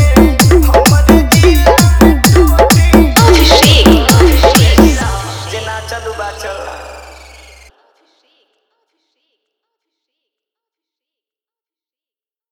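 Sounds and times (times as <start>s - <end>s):
hard vibration dholki mix: 0.0s - 6.4s.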